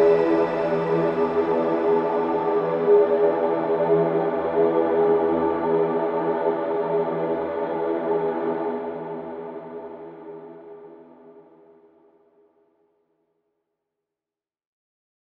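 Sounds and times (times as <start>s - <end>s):
ambient soundscape: 0.0s - 11.4s.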